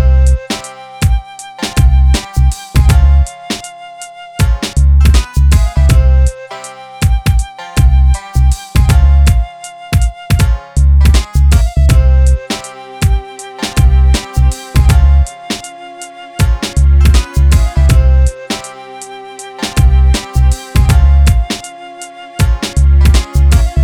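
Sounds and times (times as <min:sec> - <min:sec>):
exotica hip hop beat in C minor: 0:00.0 - 0:23.8.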